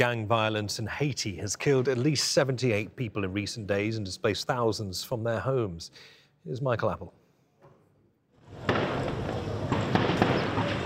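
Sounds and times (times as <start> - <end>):
speech: 0.0 - 7.2
volley of gunfire in Port-au-Prince: 8.6 - 10.8.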